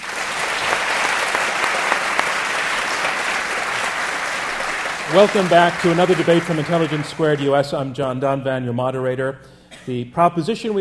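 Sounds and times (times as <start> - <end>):
large audience applause: 0.0 - 7.7
speech: 5.1 - 10.8.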